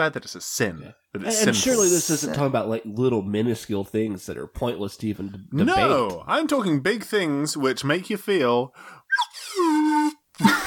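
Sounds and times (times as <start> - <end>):
speech: 0.0 - 9.3, 10.4 - 10.6
slide whistle: 9.1 - 10.5.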